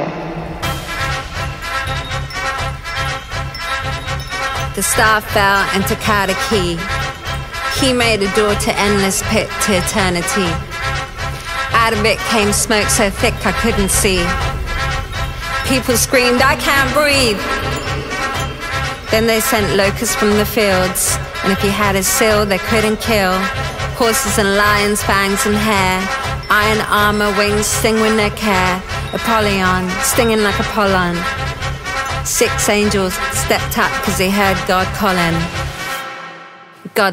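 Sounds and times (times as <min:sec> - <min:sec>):
trumpet: 0:00.2 - 0:37.0.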